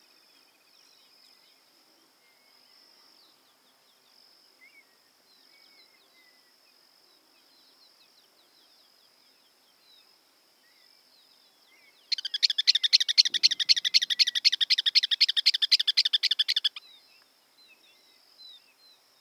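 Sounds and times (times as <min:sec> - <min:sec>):
campo miner chattering and whistling: 0:12.1 - 0:16.8.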